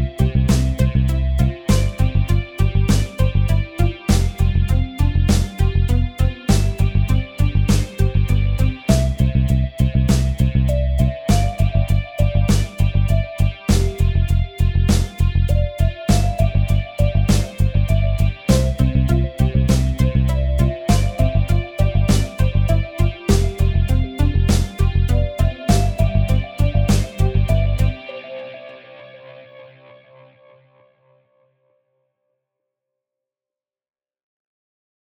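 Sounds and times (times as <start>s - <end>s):
upbeat music beat: 0.0s - 28.0s.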